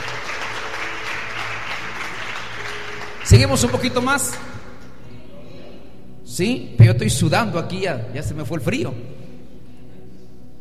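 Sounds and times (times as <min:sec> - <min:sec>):
audience applauding: 0:00.0 - 0:04.6
speech: 0:03.3 - 0:04.6, 0:06.4 - 0:09.2.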